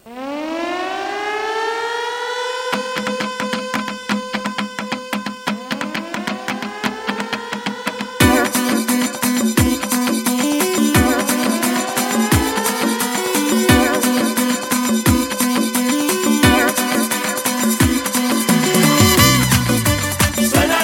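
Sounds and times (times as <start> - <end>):
civil defense siren wailing: 0.0 - 19.8
band music with pounding drums: 8.2 - 20.8.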